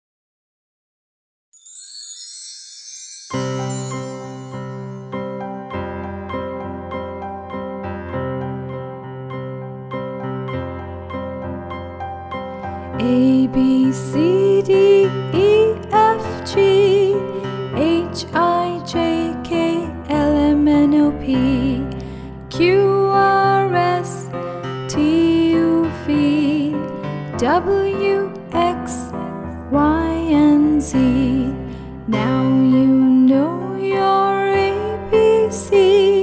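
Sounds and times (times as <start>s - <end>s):
lullaby song: 1.6s - 6.2s, 12.5s - 36.2s.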